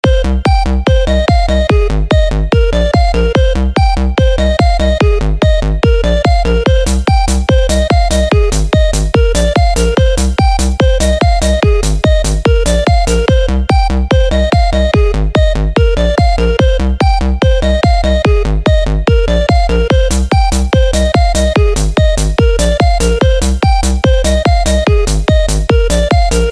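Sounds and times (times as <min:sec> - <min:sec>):
phone ringtone remix: 0:00.0 - 0:26.5.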